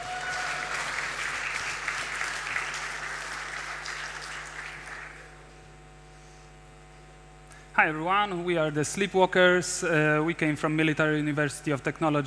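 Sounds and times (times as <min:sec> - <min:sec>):
room full of people applauding: 0:00.0 - 0:05.4
speech: 0:07.8 - 0:12.2.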